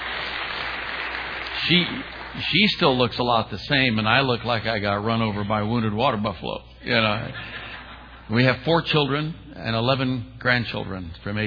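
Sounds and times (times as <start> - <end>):
crowd applause: 0.0 - 3.4
speech: 1.6 - 7.6, 8.3 - 11.4
laughter: 6.9 - 9.0.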